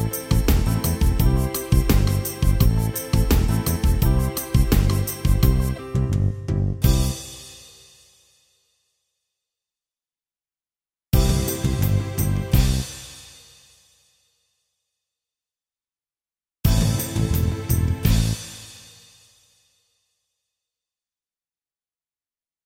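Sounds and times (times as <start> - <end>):
pop bossa nova music: 0.0 - 7.6, 11.2 - 13.1, 16.7 - 18.6.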